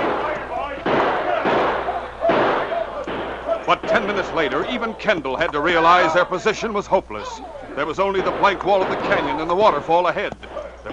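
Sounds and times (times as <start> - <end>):
gunshots in a canyon shootout: 0.0 - 4.9, 7.8 - 10.9
speech: 3.7 - 10.5.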